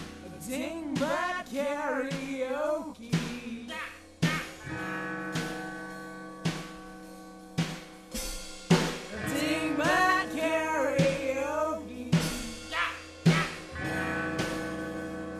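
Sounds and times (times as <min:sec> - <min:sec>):
karaoke singing: 0:00.2 - 0:05.7, 0:09.1 - 0:14.9.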